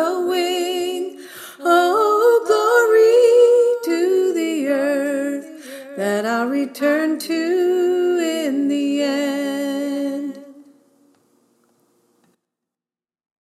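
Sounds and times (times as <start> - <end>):
alto choir singing: 0.0 - 9.7.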